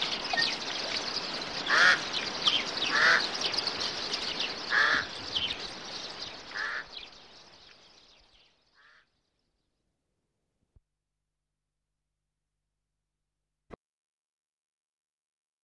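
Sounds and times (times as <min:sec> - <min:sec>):
birds twittering chorus: 0:00.0 - 0:09.7.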